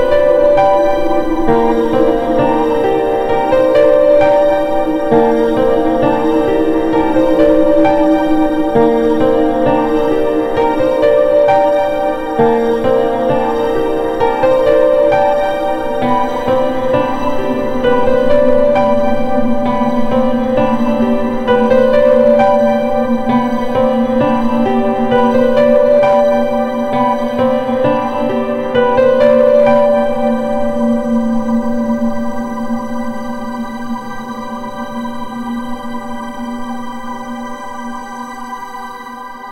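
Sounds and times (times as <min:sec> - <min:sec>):
piano practice: 0:00.0 - 0:38.0.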